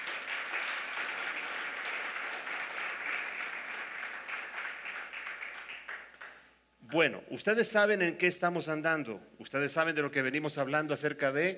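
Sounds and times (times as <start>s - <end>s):
audience applause: 0.0s - 6.4s
speech: 6.9s - 11.5s.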